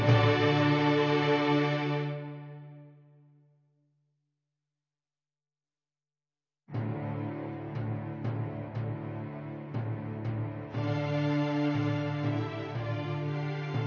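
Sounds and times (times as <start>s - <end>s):
strings: 0.0s - 3.3s, 6.8s - 13.8s.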